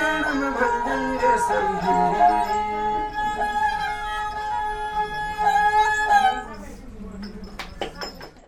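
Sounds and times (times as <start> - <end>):
minstrels playing in Nepal: 0.0 - 6.6.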